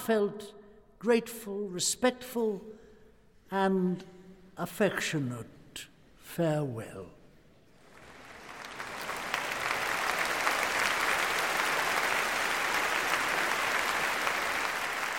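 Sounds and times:
speech: 0.0 - 2.8, 3.5 - 7.2
crowd roaring ovation: 7.8 - 15.1.

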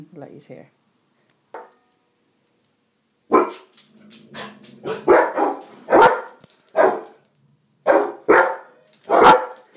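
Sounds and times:
barking: 3.3 - 3.7, 4.4 - 7.2, 7.9 - 9.7.

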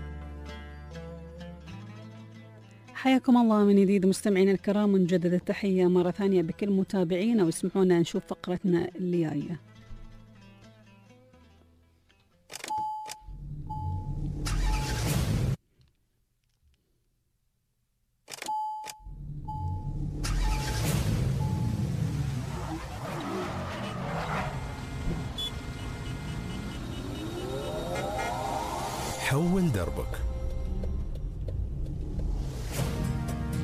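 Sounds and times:
speech: 3.0 - 9.7
car engine starting: 13.3 - 15.6, 19.1 - 33.5.

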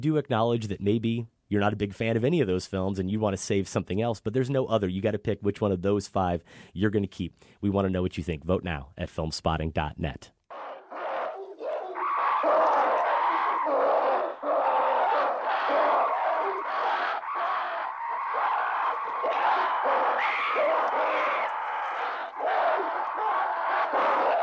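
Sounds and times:
speech: 0.0 - 10.4
prehistoric apes screeching while fighting over a water hole: 10.5 - 24.4.

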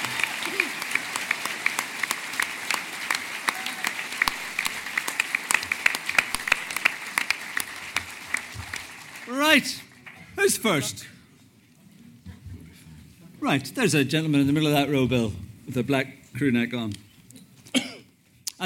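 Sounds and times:
audience applause: 0.0 - 10.9
speech: 9.6 - 9.8, 10.5 - 11.2, 13.5 - 17.0.

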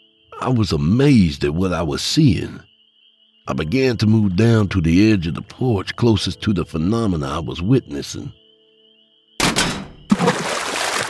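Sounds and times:
speech: 0.3 - 2.7, 3.5 - 8.4
old crawfish cage knocked into a swamp: 9.4 - 11.0.

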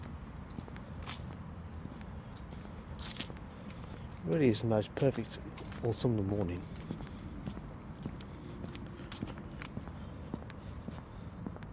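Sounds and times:
footsteps on an autumn morning walk among beech trees: 0.0 - 11.7
speech: 4.2 - 6.8.

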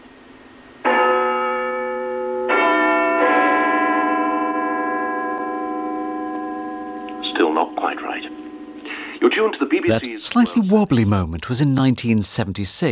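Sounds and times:
Big Ben clock tower bell chimes at Westminster: 0.8 - 9.5
speech: 9.3 - 12.9.

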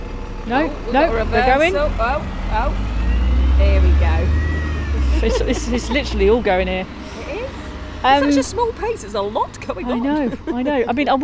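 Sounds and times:
bus right next to us: 0.0 - 11.2
speech: 0.5 - 3.0, 3.6 - 4.4, 5.2 - 7.0, 8.0 - 11.2
laughter: 4.9 - 7.2, 9.7 - 11.0.

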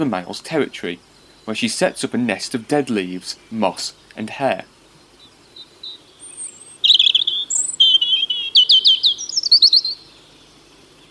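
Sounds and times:
speech: 0.0 - 4.7
European robin singing: 0.0 - 11.0.

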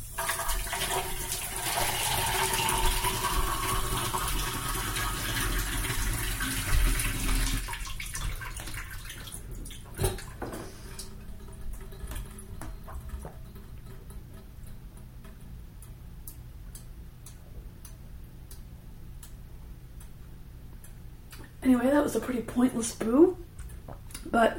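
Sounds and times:
water pouring from a faucet into a sink: 0.1 - 13.6
speech: 22.0 - 23.4, 24.3 - 24.5.

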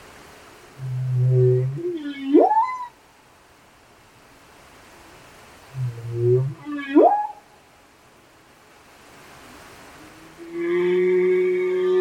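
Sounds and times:
humpback whales singing off Westman Islands: 0.8 - 3.0, 5.7 - 7.4, 10.2 - 11.9.

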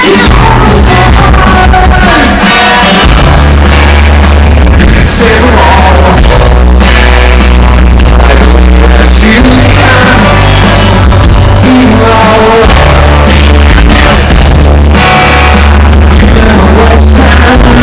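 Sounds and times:
loud biffy: 0.0 - 17.8.

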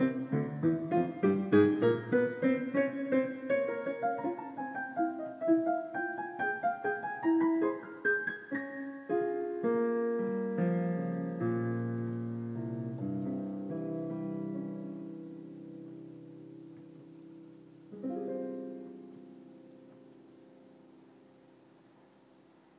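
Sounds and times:
smoky waltz music: 0.0 - 15.1.

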